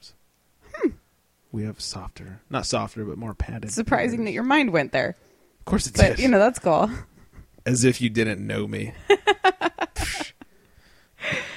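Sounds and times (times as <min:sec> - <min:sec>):
speech: 0:01.5 - 0:09.4
laugh-like bursts: 0:09.1 - 0:10.4.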